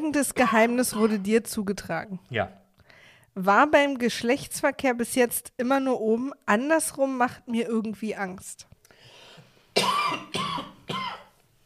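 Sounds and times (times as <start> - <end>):
speech: 0.0 - 2.6, 3.4 - 8.7
harsh coughing after choking on something: 0.4 - 1.4, 9.8 - 11.4.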